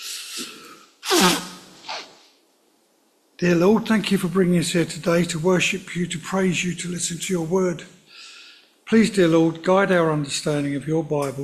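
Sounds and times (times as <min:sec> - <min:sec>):
nose blowing: 0:00.0 - 0:02.2
speech: 0:01.1 - 0:01.5, 0:03.4 - 0:08.0, 0:08.9 - 0:11.4.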